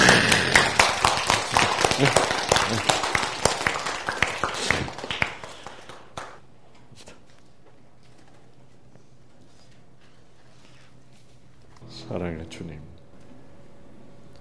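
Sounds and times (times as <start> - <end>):
audience clapping: 0.0 - 6.6.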